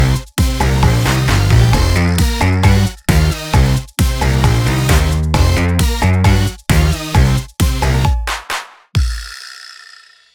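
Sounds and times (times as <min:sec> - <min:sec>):
instrumental music: 0:00.0 - 0:08.1.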